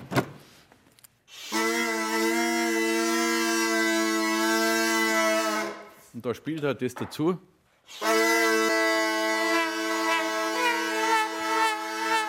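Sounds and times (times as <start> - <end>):
homemade bagpipe drone: 1.3 - 6.1, 7.9 - 12.2
speech: 6.2 - 8.2.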